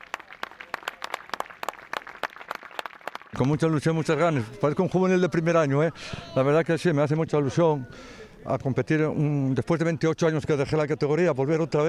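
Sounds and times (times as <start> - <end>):
football crowd applauding departing goalkeeper: 0.0 - 3.4
speech: 3.4 - 11.8.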